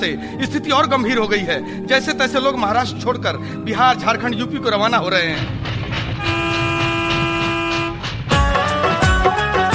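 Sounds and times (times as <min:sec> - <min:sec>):
speech: 0:00.0 - 0:06.4
train arriving at station: 0:04.4 - 0:09.6
train horn blast: 0:06.2 - 0:08.9.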